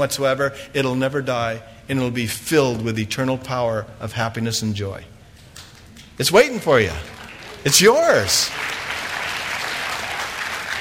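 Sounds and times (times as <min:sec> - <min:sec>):
speech: 0:00.0 - 0:05.2, 0:06.2 - 0:08.8
audience clapping: 0:06.5 - 0:10.7.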